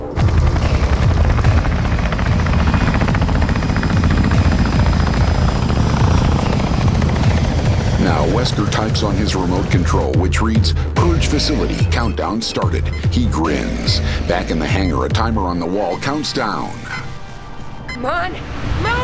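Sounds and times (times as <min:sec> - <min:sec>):
Fletner rotorcraft lifting off and flying away: 0:00.1 - 0:10.2
speech: 0:08.5 - 0:17.0, 0:18.0 - 0:19.0.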